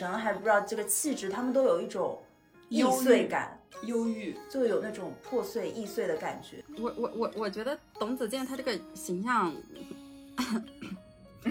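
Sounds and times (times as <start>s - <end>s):
speech: 0.0s - 10.8s
person coughing: 10.4s - 11.4s.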